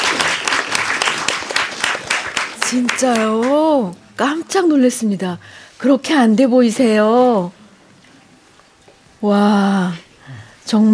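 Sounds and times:
audience applause: 0.0 - 3.6
speech: 2.7 - 7.6, 9.2 - 10.9.

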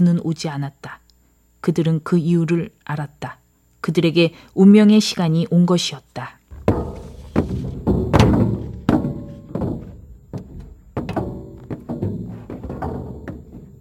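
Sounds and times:
speech: 0.0 - 1.0, 1.6 - 6.4
marines' heavy boots marching: 6.5 - 13.7.

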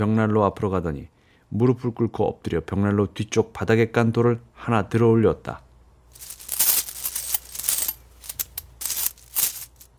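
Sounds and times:
speech: 0.0 - 5.6
silver coins clinking as they are counted out: 6.2 - 9.9.

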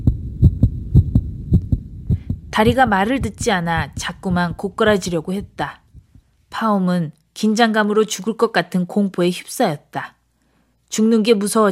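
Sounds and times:
pounding heartbeat: 0.0 - 6.3
speech: 2.6 - 5.8, 6.5 - 10.2, 10.9 - 11.7.

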